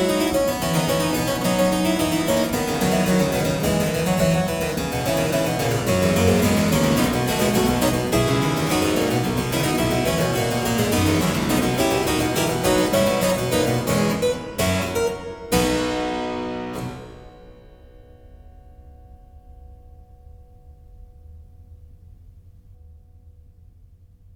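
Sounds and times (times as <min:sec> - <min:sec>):
keyboard fugue: 0:00.0 - 0:17.8.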